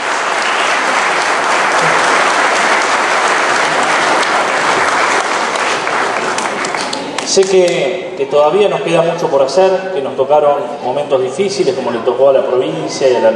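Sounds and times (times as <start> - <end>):
audience applause: 0.0 - 7.8
speech: 7.4 - 13.3.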